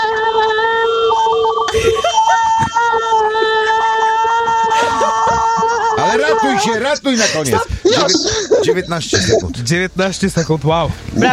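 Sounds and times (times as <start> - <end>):
person holding a long loud scream of one word: 0.0 - 9.4
laughter: 1.7 - 3.0, 4.0 - 10.6
voices shouting encouragement: 4.8 - 9.5
speech: 6.6 - 11.3.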